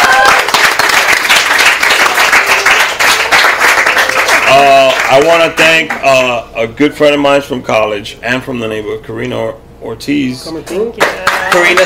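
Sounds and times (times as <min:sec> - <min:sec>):
round of applause: 0:00.0 - 0:06.0, 0:11.0 - 0:11.8
speech: 0:05.1 - 0:11.8.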